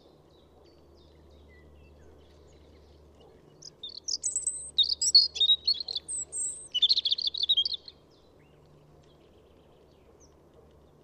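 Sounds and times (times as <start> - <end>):
European robin singing: 1.0 - 8.6.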